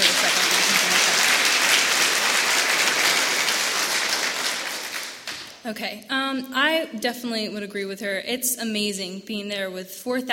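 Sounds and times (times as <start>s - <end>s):
applause: 0.0s - 5.6s
speech: 5.7s - 10.3s.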